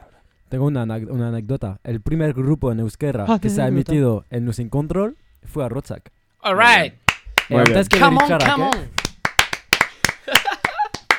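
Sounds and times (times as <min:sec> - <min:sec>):
speech: 0:00.5 - 0:09.0
hand clapping: 0:07.1 - 0:11.1.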